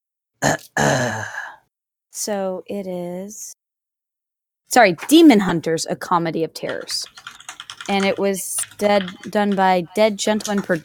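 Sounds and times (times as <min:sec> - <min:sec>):
speech: 0:00.4 - 0:01.2, 0:02.2 - 0:03.6, 0:04.7 - 0:10.8
person clearing throat: 0:00.4 - 0:01.3.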